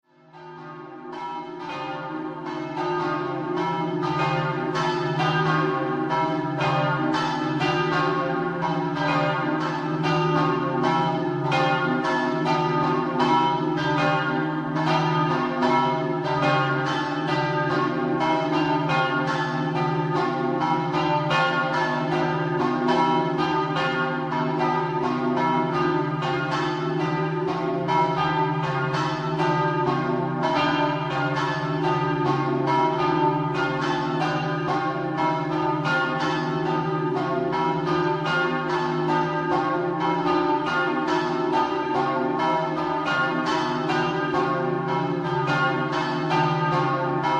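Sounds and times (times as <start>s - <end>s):
bells ringing: 0.3s - 47.3s.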